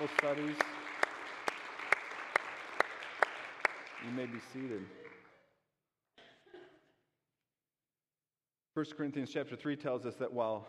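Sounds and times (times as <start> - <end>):
speech: 0.0 - 0.8, 4.0 - 5.1, 8.8 - 10.6
audience clapping hands: 0.0 - 5.4.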